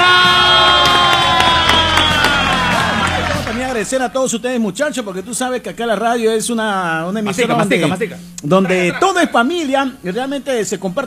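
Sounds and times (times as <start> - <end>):
crowd cheering and whooping welcoming a guest: 0.0 - 4.1
scattered clapping: 0.3 - 4.0
speech: 3.9 - 11.0.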